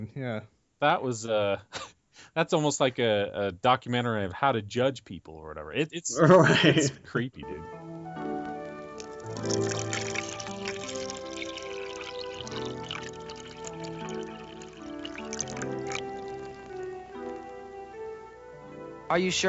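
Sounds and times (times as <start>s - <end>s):
speech: 0.0s - 7.9s, 9.4s - 10.0s, 19.1s - 19.4s
laughter: 6.1s - 7.3s
coffee being poured into a cup: 8.8s - 17.6s.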